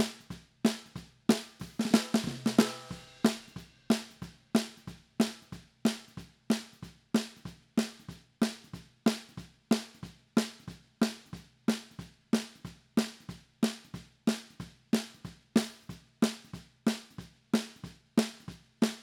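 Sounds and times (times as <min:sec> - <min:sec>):
snare drum bottom: 0:00.0 - 0:19.0.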